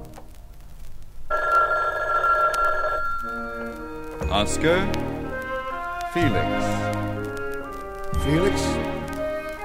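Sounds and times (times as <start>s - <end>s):
telephone ringing with electronic bell tone: 1.3s - 4.4s
soft tonal sounds: 1.3s - 9.6s
speech: 4.3s - 5.1s, 6.1s - 7.0s, 8.2s - 8.9s.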